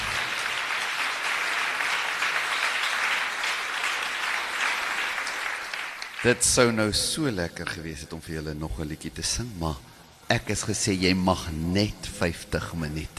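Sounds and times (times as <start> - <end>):
audience clapping hands: 0.0 - 6.8
speech: 6.2 - 13.1.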